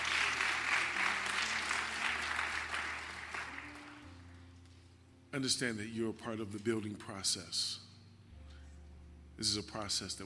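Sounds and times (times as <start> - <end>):
audience clapping hands: 0.0 - 4.3
speech: 5.4 - 7.8, 9.4 - 10.2.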